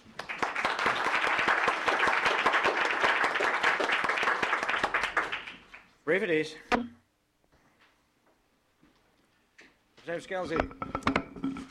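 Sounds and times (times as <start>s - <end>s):
clapping in a legislative chamber in Juneau: 0.0s - 6.0s
speech: 6.1s - 7.0s, 10.1s - 11.2s.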